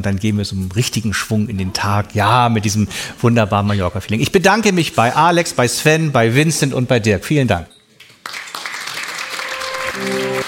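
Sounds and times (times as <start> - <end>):
speech: 0.0 - 7.8
audience applause: 8.2 - 10.4.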